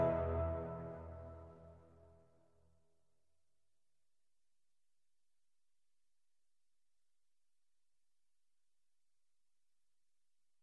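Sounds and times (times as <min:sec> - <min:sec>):
karaoke singing: 0:00.0 - 0:00.6.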